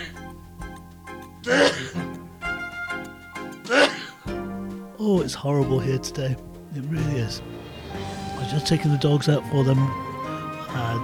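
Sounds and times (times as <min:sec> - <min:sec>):
person sneezing: 0:01.4 - 0:02.0, 0:03.6 - 0:04.3
speech: 0:01.5 - 0:02.0, 0:05.0 - 0:10.1, 0:10.7 - 0:11.0.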